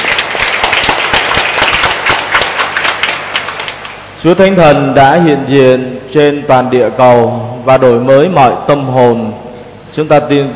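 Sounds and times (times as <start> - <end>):
audience applause: 0.0 - 3.9
speech: 4.2 - 10.5.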